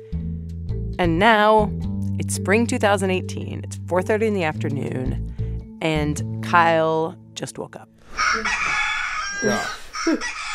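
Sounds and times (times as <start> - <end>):
speech: 1.0 - 8.8, 9.4 - 10.5
rooster crowing alarm clock sound: 8.2 - 10.5.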